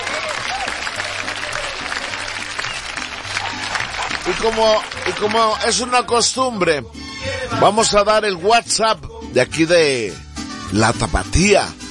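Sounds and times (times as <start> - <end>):
audience applause: 0.0 - 6.1
speech: 4.2 - 7.0, 7.6 - 11.8.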